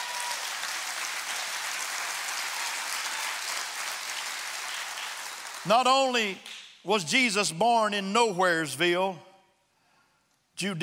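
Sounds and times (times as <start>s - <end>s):
audience hand clapping: 0.0s - 6.8s
speech: 5.6s - 9.3s, 10.6s - 10.8s.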